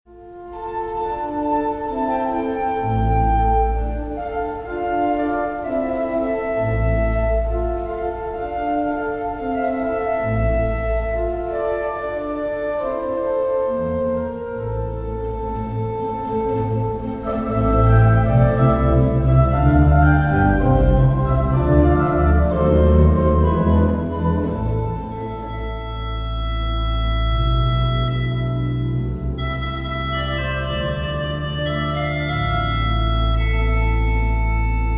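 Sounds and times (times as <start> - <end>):
organ medley: 0.2 - 34.9.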